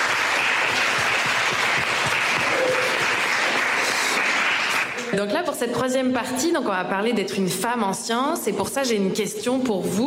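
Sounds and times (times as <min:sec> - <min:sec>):
audience applause: 0:00.0 - 0:05.1
speech: 0:05.2 - 0:10.0.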